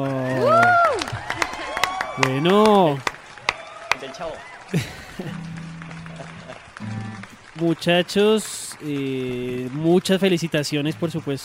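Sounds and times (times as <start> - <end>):
loud rising-and-falling vocal cheer: 0.0 - 5.3
applause: 0.0 - 11.4
speech: 2.2 - 3.1, 4.2 - 5.6, 7.6 - 11.4
laughter: 4.6 - 7.2.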